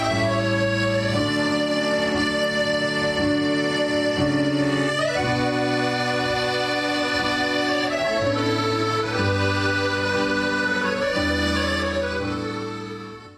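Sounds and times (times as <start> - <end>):
accordion class playing: 0.0 - 13.3.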